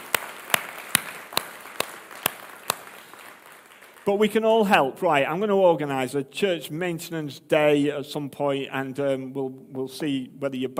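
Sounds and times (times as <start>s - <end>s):
audience clapping: 0.0s - 4.4s
speech: 4.1s - 10.7s.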